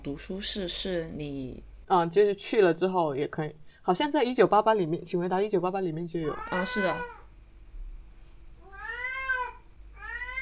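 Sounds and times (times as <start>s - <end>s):
speech: 0.0s - 7.2s
cat meowing: 6.2s - 7.3s, 8.6s - 10.4s.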